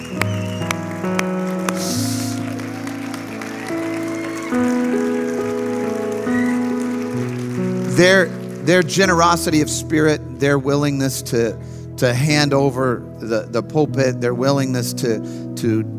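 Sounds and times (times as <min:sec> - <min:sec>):
audience applauding: 0:00.0 - 0:09.4
speech: 0:08.0 - 0:15.9.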